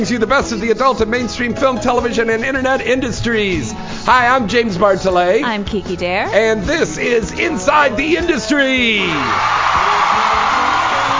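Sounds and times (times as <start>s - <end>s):
speech: 0.0s - 9.9s
crowd cheering wildly: 8.8s - 11.1s.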